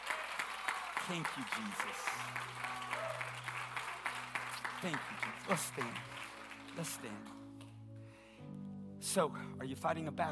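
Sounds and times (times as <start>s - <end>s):
audience applause: 0.0s - 7.4s
speech: 1.1s - 3.4s, 4.8s - 7.5s, 9.0s - 10.2s.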